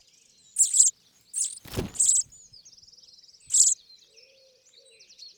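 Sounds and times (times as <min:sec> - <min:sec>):
chaffinch: 0:00.6 - 0:02.5, 0:03.5 - 0:03.7.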